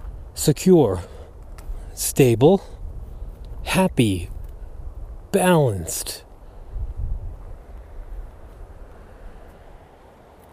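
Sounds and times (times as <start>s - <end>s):
strong wind blowing under old power lines: 0.0s - 10.1s
speech: 0.4s - 1.2s, 2.0s - 2.8s, 3.6s - 4.3s, 5.3s - 6.2s.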